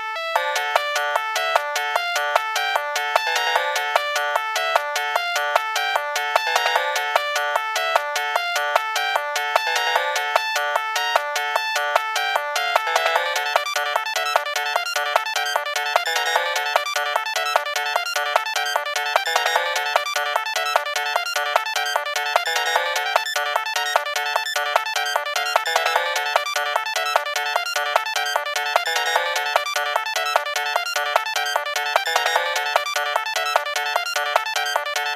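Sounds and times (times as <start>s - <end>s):
trance music: 0.2s - 35.1s.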